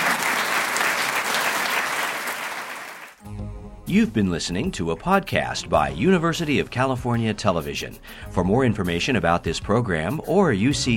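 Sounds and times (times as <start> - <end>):
audience applause: 0.0 - 3.2
speech: 3.9 - 10.9.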